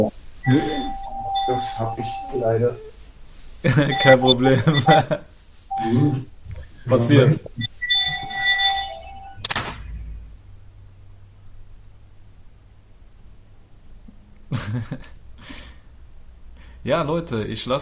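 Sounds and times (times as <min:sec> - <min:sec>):
speech: 0:00.0 - 0:02.9, 0:03.6 - 0:07.8, 0:14.5 - 0:15.6, 0:16.8 - 0:17.8
alarm clock or phone ringing: 0:00.4 - 0:02.5, 0:03.9 - 0:06.2, 0:07.7 - 0:09.4.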